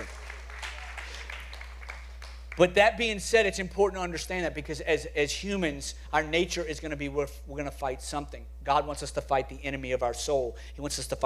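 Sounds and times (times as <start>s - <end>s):
audience clapping: 0.0s - 2.8s
speech: 2.6s - 11.2s.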